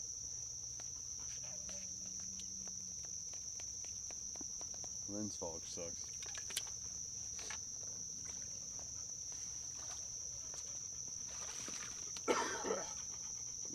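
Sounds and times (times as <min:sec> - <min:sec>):
high insect drone: 0:00.0 - 0:13.7
speech: 0:05.1 - 0:06.1
hunter throat clearing and coughing up mucus: 0:12.2 - 0:13.0.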